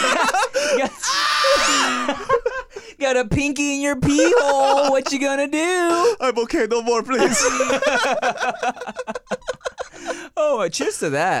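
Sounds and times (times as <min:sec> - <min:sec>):
laughter: 0:00.0 - 0:02.8, 0:04.1 - 0:05.3, 0:07.1 - 0:10.3
person imitating a man screaming: 0:01.0 - 0:02.2
speech: 0:03.0 - 0:11.3.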